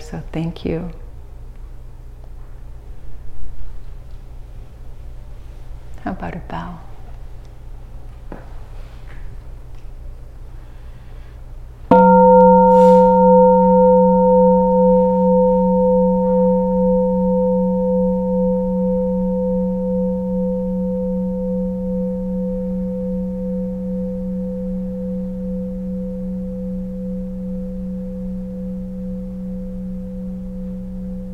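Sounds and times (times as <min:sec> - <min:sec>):
speech: 0:00.1 - 0:01.0, 0:06.0 - 0:06.9
meditation bell ringing: 0:11.9 - 0:31.3.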